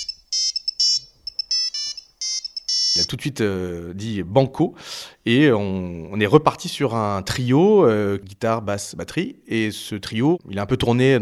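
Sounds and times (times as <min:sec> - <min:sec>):
Nokia 3310 mobile phone ringtone: 0:00.0 - 0:03.1
speech: 0:03.0 - 0:11.2.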